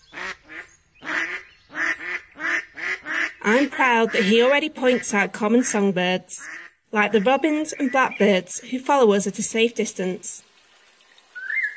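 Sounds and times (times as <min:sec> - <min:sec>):
ducks quacking: 0:00.1 - 0:08.7
speech: 0:03.4 - 0:10.5.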